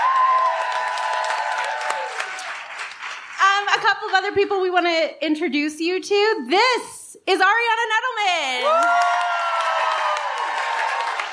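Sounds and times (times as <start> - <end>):
audience applause: 0.0 - 3.4, 8.7 - 11.3
speech: 3.8 - 9.2.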